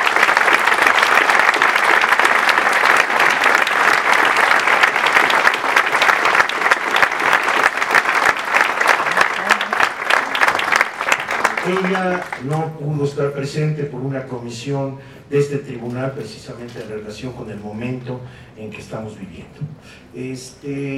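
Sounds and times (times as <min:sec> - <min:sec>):
audience applauding: 0:00.0 - 0:12.6
speech: 0:11.7 - 0:20.9.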